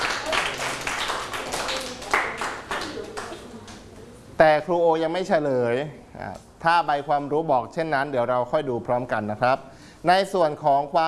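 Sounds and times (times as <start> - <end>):
classroom applause: 0.0 - 3.9
speech: 4.4 - 11.0.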